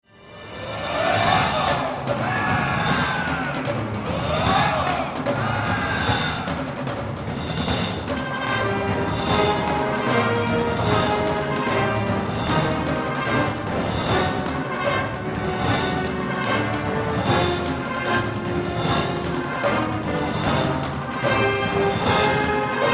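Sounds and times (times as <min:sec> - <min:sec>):
thunderous drums: 0:00.6 - 0:22.9.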